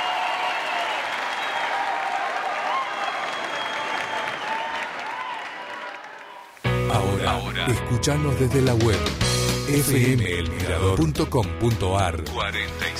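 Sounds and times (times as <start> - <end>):
audience applause: 0.0 - 6.7
speech: 7.6 - 12.9.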